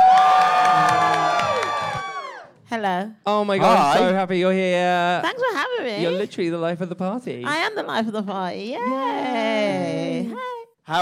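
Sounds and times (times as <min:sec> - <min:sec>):
live comedy audience in Edinburgh cheering and applauding: 0:00.0 - 0:02.5
speech: 0:02.8 - 0:11.0.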